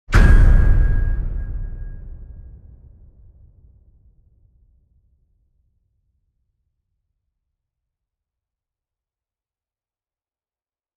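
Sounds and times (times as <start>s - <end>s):
powerful metal impact: 0.1s - 3.4s.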